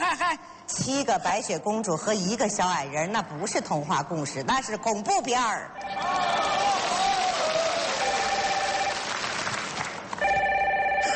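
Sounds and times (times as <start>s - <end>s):
speech: 0.8s - 6.6s
noisy crowd sound: 5.8s - 10.2s
telephone ringing: 8.0s - 9.1s, 10.2s - 11.1s.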